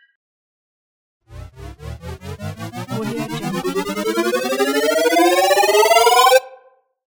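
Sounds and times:
futuristic charging sound: 0:01.3 - 0:06.4.

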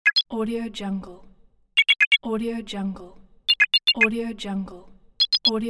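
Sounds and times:
message notification sounds: 0:00.0 - 0:00.3, 0:01.8 - 0:02.2, 0:03.5 - 0:04.1, 0:05.2 - 0:05.5.

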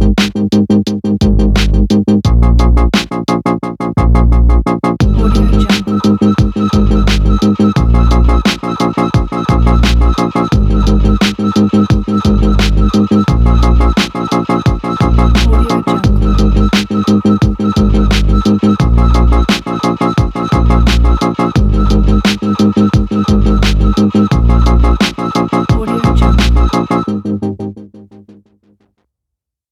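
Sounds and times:
light bassy beat: 0:00.0 - 0:03.4, 0:04.0 - 0:27.1.

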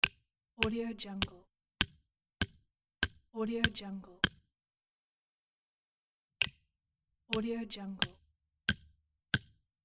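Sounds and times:
hammering metal stakes into ground: 0:00.0 - 0:04.4, 0:08.0 - 0:09.5.

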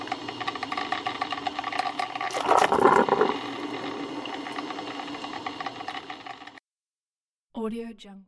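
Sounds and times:
electric coffee maker: 0:00.0 - 0:06.6.

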